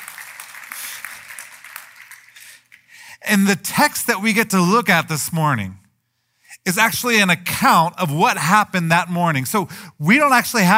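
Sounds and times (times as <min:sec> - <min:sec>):
audience clapping: 0:00.0 - 0:03.0
speech: 0:03.3 - 0:05.8, 0:06.7 - 0:10.7.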